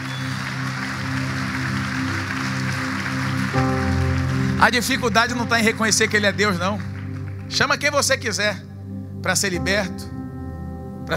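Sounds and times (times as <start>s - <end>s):
audience applause: 0.0s - 7.9s
speech: 4.6s - 6.9s, 7.5s - 10.1s.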